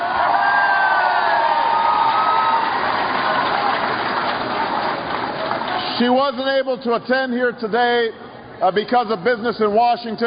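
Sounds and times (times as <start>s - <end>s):
whoops and high shouts: 0.0s - 3.0s
large crowd cheering and applauding: 0.0s - 6.0s
speech: 6.0s - 10.2s.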